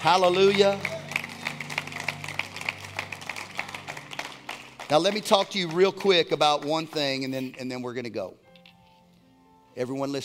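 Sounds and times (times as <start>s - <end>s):
speech: 0.0s - 0.9s, 4.9s - 8.4s, 9.8s - 10.2s
audience hand clapping: 0.0s - 7.4s.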